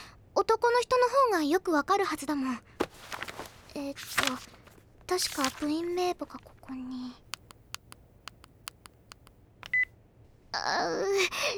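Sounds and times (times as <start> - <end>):
speech: 0.5 - 2.7, 3.8 - 7.2, 10.6 - 11.5
phone keypad tones while dialing a number: 7.3 - 9.9.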